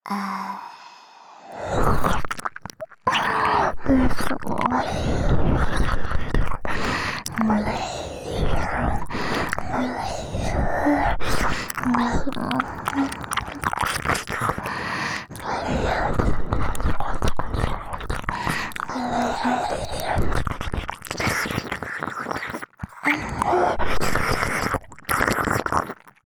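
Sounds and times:
ear licking and mouthing: 1.6s - 26.2s.

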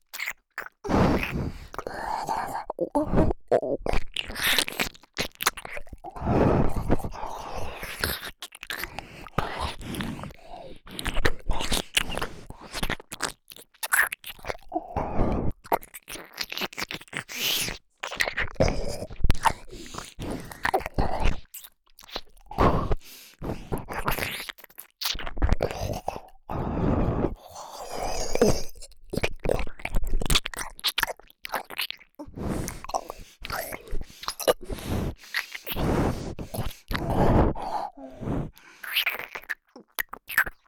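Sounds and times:
ear licking sounds: 0.0s - 40.6s
nose breathing: 0.8s - 3.4s, 6.1s - 13.0s, 18.6s - 21.4s, 22.5s - 24.3s, 25.5s - 28.8s, 32.2s - 39.6s.

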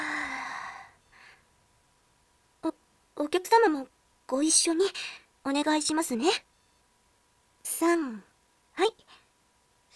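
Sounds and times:
person taking a deep breath: 0.0s - 1.5s
speech: 3.2s - 6.5s, 7.6s - 9.0s.

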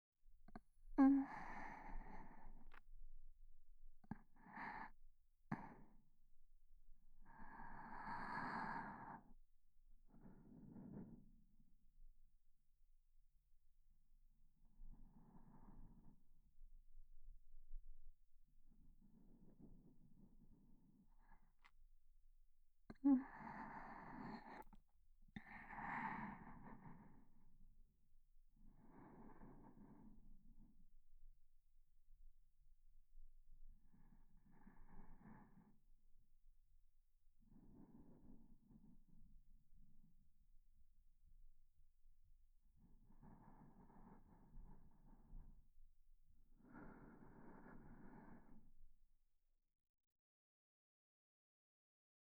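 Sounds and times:
sleeping breath: 0.5s - 2.9s, 3.9s - 6.1s, 7.0s - 11.5s, 14.6s - 16.6s, 18.8s - 21.7s, 22.9s - 27.6s, 28.6s - 30.8s, 33.8s - 35.9s, 37.4s - 39.4s, 42.8s - 45.8s, 46.4s - 48.8s.

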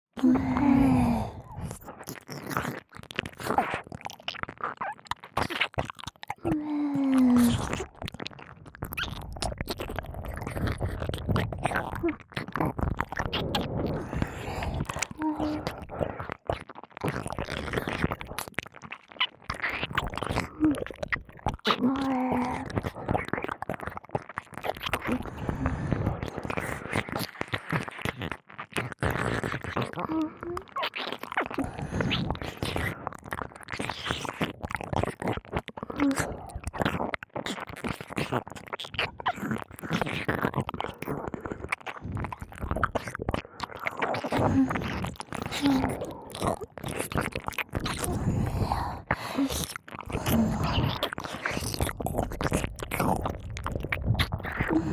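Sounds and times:
ear licking sounds loop: 0.2s - 54.9s.

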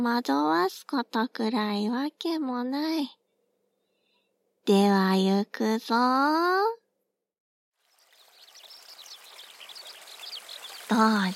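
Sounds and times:
speech: 0.0s - 3.2s, 4.7s - 6.8s, 10.9s - 11.3s
babbling stream in a peaceful landscape: 7.8s - 11.3s.

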